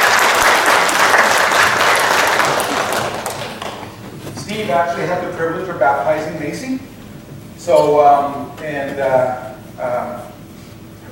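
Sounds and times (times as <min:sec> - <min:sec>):
audience applause: 0:00.0 - 0:04.0
speech: 0:04.7 - 0:07.0, 0:07.6 - 0:10.3.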